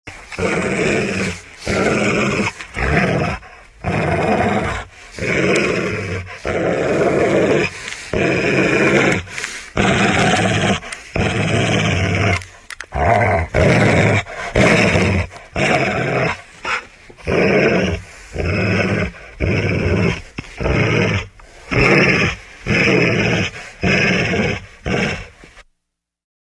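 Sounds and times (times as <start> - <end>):
dog growling: 0.2 - 25.6.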